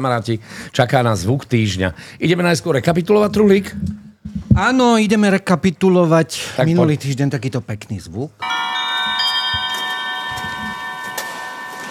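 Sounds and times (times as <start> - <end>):
speech: 0.0 - 4.0, 4.6 - 8.6
19th-century music box shaped like a silver swan chiming: 8.4 - 11.9.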